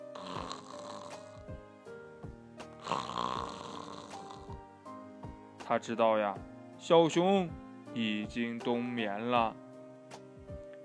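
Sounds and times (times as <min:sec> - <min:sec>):
heavy snoring: 0:00.0 - 0:01.6, 0:02.8 - 0:04.7
speech: 0:05.7 - 0:09.6.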